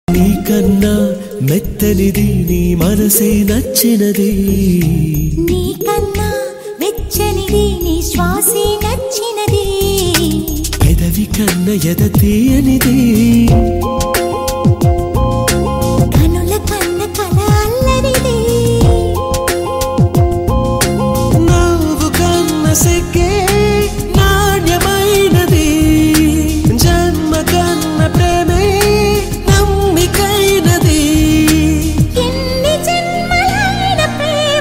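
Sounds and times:
Telugu love song: 0.0 - 34.5.

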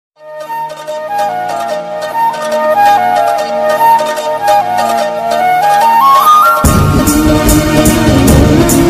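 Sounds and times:
Tamil romantic background music ringtone: 0.2 - 8.8.

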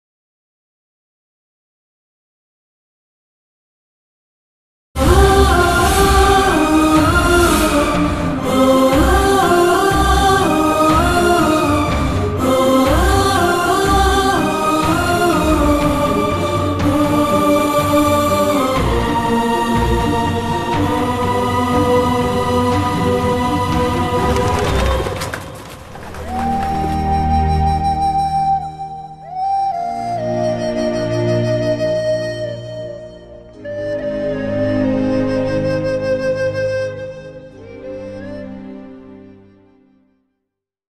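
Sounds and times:
Kannada movie emotional background music: 5.0 - 40.1.

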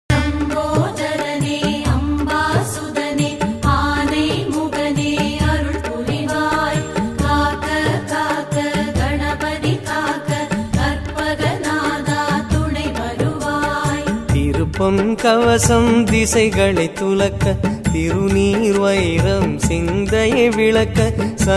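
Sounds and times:
Tamil devotional songs: 0.1 - 21.5.

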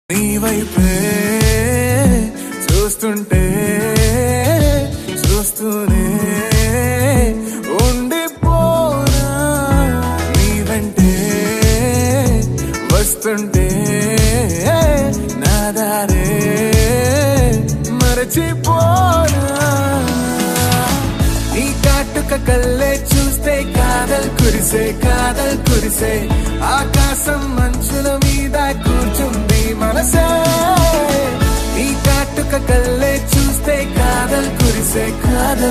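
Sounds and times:
song: 0.1 - 35.6.

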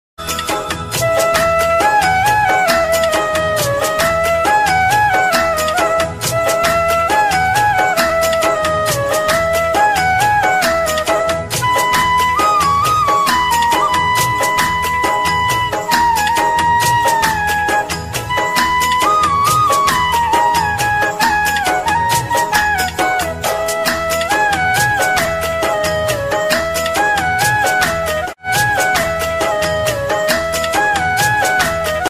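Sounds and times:
bansuri flute Hindi ringtone: 0.2 - 32.0.

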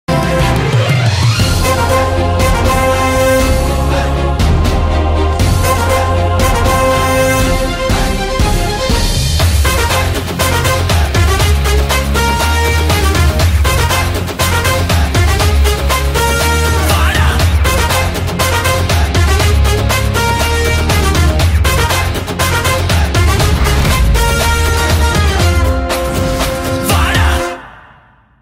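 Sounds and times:
background music ringtone: 0.1 - 28.1.

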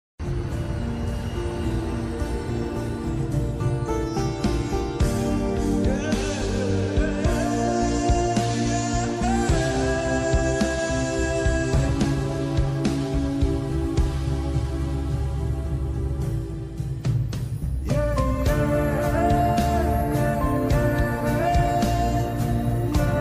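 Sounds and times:
background music ringtone: 0.2 - 23.2.

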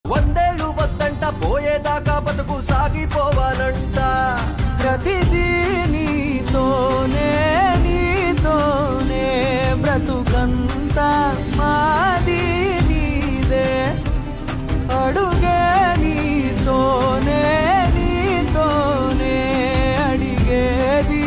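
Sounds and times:
Telugu background song: 0.0 - 21.2.

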